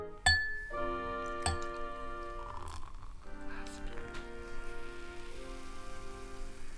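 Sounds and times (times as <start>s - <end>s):
bubbles fizzing and crackling in glasses: 0.1s - 6.7s
sustained ringing tones: 0.3s - 2.9s.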